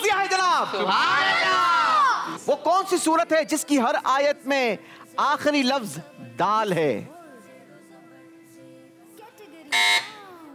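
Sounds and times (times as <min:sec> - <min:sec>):
speech: 0:00.6 - 0:01.7, 0:02.3 - 0:07.2
quiz show answer buzzer: 0:09.7 - 0:10.2.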